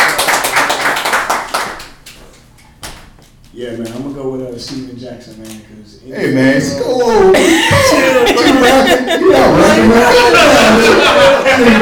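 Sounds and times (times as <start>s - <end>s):
small group clapping: 0.0s - 2.5s
speech: 3.6s - 11.8s
laughter: 6.8s - 11.8s.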